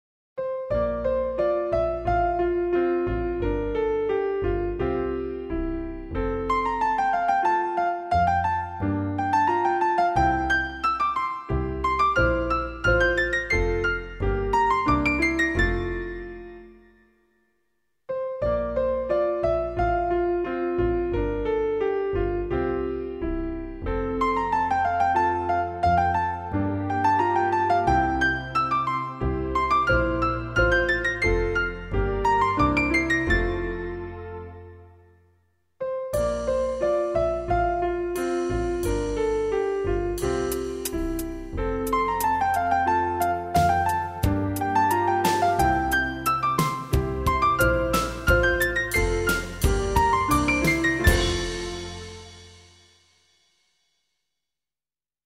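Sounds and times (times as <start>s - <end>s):
instrumental music: 0.4s - 17.5s, 18.1s - 53.6s.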